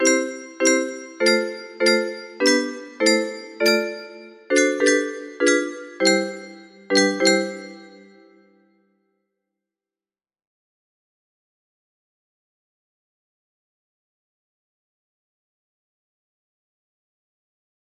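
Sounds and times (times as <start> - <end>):
music box melody: 0.0 - 8.4.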